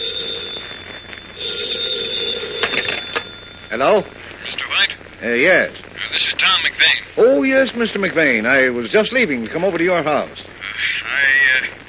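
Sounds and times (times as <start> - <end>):
telephone ringing with shrill electric bell: 0.0 - 4.1
speech: 3.7 - 10.9.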